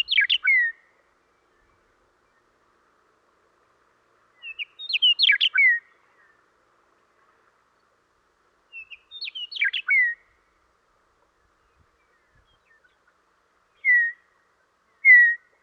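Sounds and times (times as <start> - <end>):
Western meadowlark chatter in western North America: 0.0 - 2.8, 4.4 - 6.5, 8.7 - 10.4, 11.4 - 15.6.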